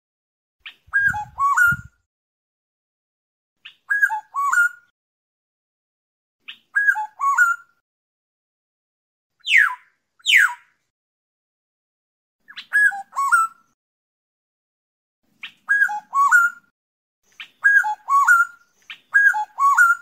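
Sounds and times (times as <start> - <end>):
black-naped oriole fluting whistles: 0.6 - 2.0, 3.6 - 4.9, 6.5 - 7.7, 9.4 - 10.6, 12.5 - 13.7, 15.4 - 16.7, 17.3 - 20.0.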